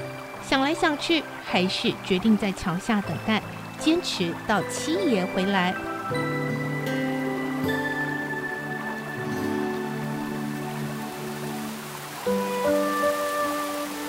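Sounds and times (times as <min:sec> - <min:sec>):
heavy rain: 0:00.0 - 0:14.0
sustained musical tones: 0:00.0 - 0:14.0
speech: 0:00.5 - 0:06.5.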